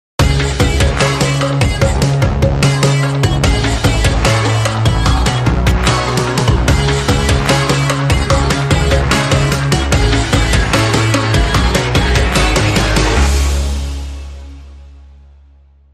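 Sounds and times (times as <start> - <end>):
dark groove music: 0.2 - 15.9.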